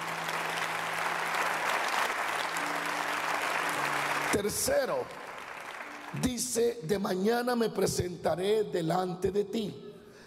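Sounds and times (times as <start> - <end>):
audience applause: 0.0 - 6.2
speech: 4.3 - 5.2, 6.1 - 9.8.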